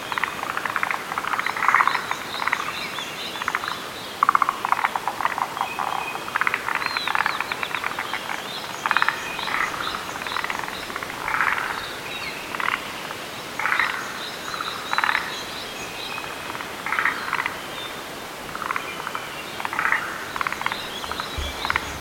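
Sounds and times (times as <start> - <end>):
forest green tree frog chorus: 0.1 - 21.9.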